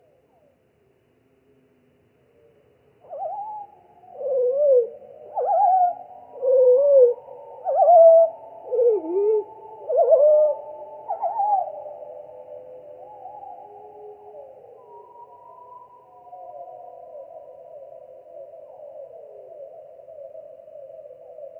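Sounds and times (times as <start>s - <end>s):
pied flycatcher song: 2.4s - 21.5s.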